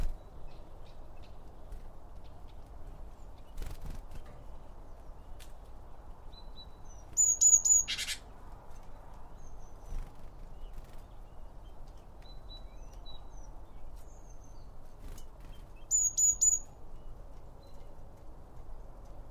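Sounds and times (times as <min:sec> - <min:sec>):
small birds chirping: 0:00.0 - 0:19.2.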